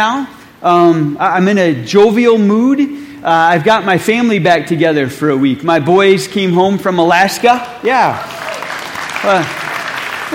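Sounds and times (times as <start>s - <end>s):
speech: 0.0s - 8.4s, 9.2s - 9.6s
audience clapping: 7.6s - 10.3s.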